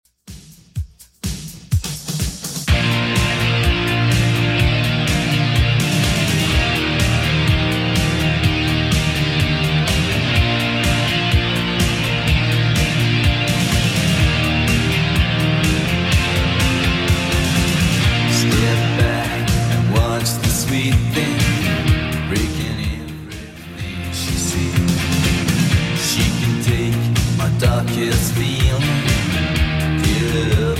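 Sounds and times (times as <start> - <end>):
1980s 125 BPM retro electronic music: 0.3 - 30.7.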